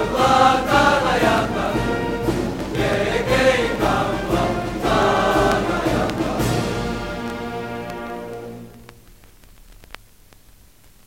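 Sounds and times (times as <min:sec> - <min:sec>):
cheering song: 0:00.0 - 0:08.6.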